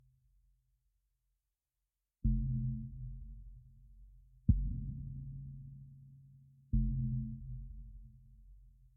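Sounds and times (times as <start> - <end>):
tension kick drum: 2.3 - 6.0, 6.8 - 8.9.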